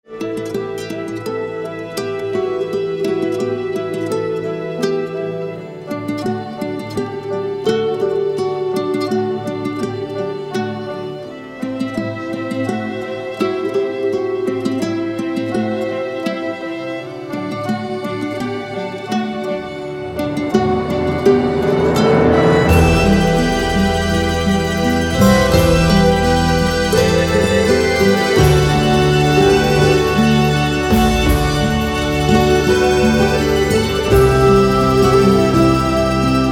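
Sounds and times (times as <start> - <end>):
instrumental music: 0.0 - 36.5.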